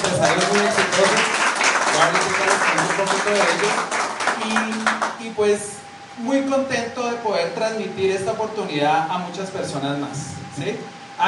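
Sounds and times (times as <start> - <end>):
audience applause: 0.0 - 5.2
speech: 2.0 - 11.2.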